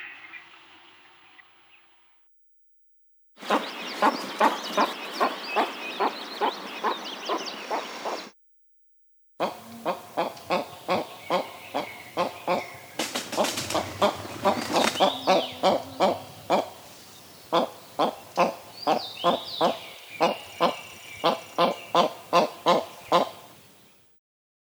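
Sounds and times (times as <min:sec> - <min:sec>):
capercaillie calling: 0:03.4 - 0:08.3, 0:09.4 - 0:23.8.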